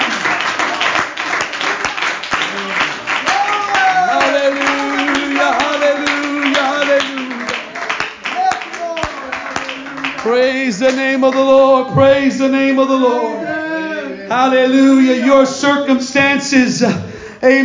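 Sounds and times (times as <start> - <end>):
audience clapping hands: 0.0 - 13.0
speech: 10.8 - 13.4, 14.3 - 17.6.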